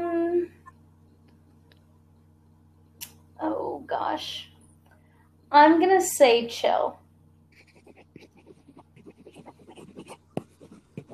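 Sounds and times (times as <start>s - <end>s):
speech: 4.2s - 4.5s, 5.5s - 7.0s
pen scribbling on paper: 7.5s - 11.1s.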